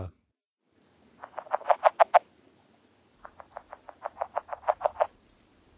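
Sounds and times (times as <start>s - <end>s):
Northern red-legged frog giving throaty clucking calls: 1.2s - 2.3s, 3.2s - 5.2s.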